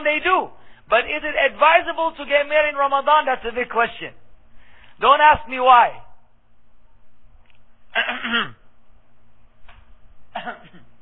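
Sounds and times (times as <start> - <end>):
speech: 0.0 - 4.2, 5.0 - 6.0, 8.0 - 8.6, 10.4 - 10.8
fake cough: 7.9 - 8.6, 10.3 - 11.0.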